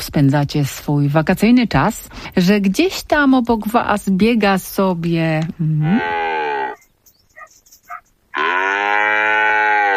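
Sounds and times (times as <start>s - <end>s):
speech: 0.0s - 6.5s
calf mooing: 5.8s - 9.9s.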